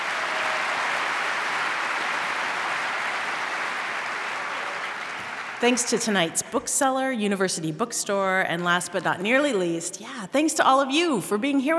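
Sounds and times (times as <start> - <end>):
audience applause: 0.0 - 6.2
speech: 5.6 - 11.7.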